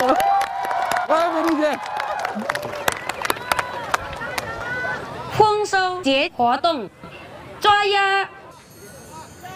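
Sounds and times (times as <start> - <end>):
applause: 0.0 - 4.9
speech: 1.1 - 2.8, 5.4 - 7.0, 7.6 - 8.4.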